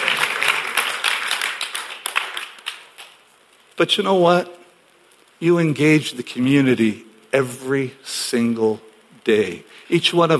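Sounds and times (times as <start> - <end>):
audience clapping: 0.0 - 3.3
speech: 3.8 - 4.6, 5.4 - 10.3.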